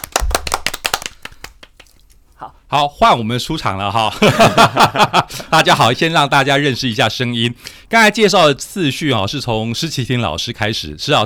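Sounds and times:
sharp handclaps from a few people: 0:00.0 - 0:02.0
speech: 0:02.4 - 0:11.2
laughter: 0:04.1 - 0:06.0.

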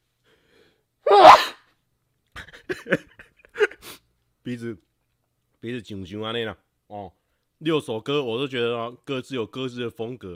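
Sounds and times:
loud sneeze: 0:01.1 - 0:01.7
speech: 0:02.7 - 0:03.2, 0:04.5 - 0:04.9, 0:05.6 - 0:10.3.

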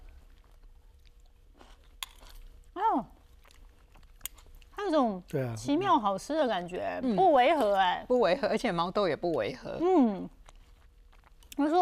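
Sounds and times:
person chewing a bite of shrimp tossed with tomato: 0:00.0 - 0:04.8, 0:10.4 - 0:11.6
speech: 0:04.9 - 0:10.4.

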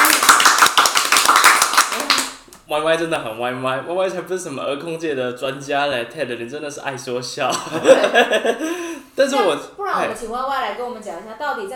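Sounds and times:
applause: 0:00.0 - 0:02.4
speech: 0:02.7 - 0:11.7
laughter: 0:07.5 - 0:09.0.

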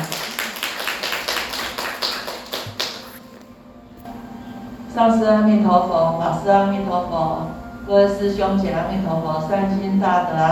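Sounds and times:
audience clapping: 0:00.0 - 0:03.3
speech: 0:05.0 - 0:10.5.

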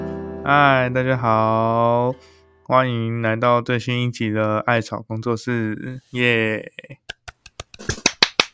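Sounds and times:
speech: 0:00.5 - 0:07.1
hand claps: 0:07.0 - 0:08.5.

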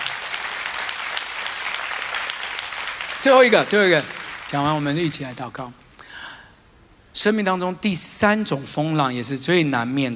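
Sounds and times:
applause: 0:00.0 - 0:05.4
speech: 0:03.2 - 0:05.8, 0:07.2 - 0:10.1.

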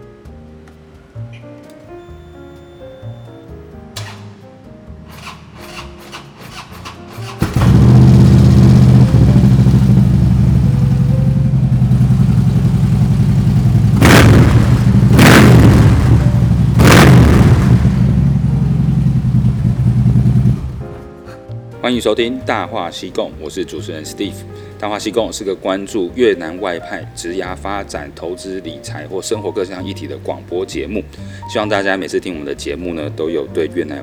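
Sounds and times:
music: 0:00.0 - 0:34.0
Harley-Davidson motorcycle engine idling and revving: 0:05.0 - 0:21.0
speech: 0:21.9 - 0:34.0.

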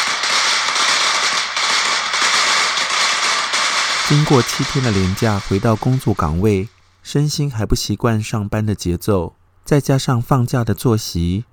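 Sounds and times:
string of firecrackers exploding: 0:00.0 - 0:07.1
speech: 0:04.1 - 0:11.5.

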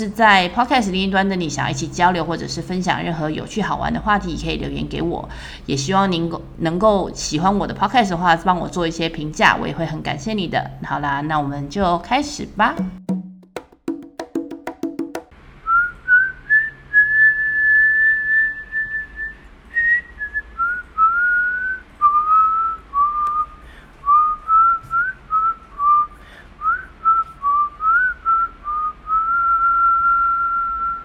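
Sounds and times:
speech: 0:00.0 - 0:13.1
person whistling a song melody: 0:15.7 - 0:31.0.

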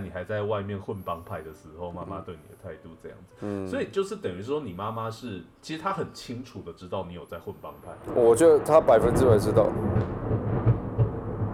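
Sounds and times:
speech: 0:00.1 - 0:10.5
loud thunder: 0:08.0 - 0:11.5.

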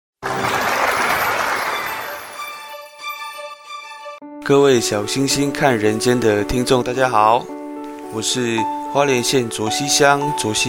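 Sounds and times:
audience applause: 0:00.2 - 0:03.1
sustained musical tones: 0:00.2 - 0:04.4
speech: 0:04.5 - 0:10.6.

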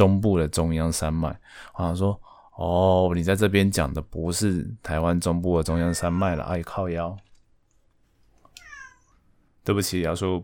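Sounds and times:
speech: 0:00.0 - 0:07.3, 0:09.6 - 0:10.4
hungry cat meowing: 0:05.7 - 0:06.6, 0:08.5 - 0:09.2.

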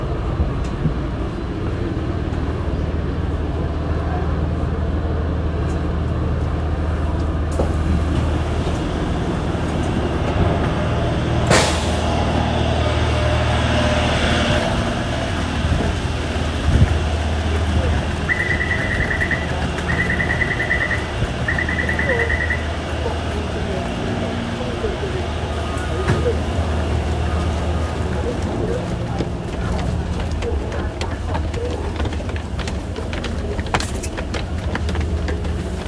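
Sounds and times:
Taipei metro train rumble from the main station: 0:00.0 - 0:35.8
murmured speech on a Taipei metro: 0:17.0 - 0:35.7
short beeps: 0:18.3 - 0:22.7.

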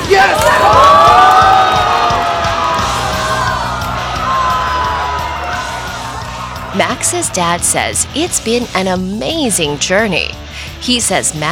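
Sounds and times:
excited yells and whoops: 0:00.0 - 0:07.7
crowd cheering at a Rubik's cube competition: 0:00.0 - 0:08.8
speech: 0:07.0 - 0:11.5.

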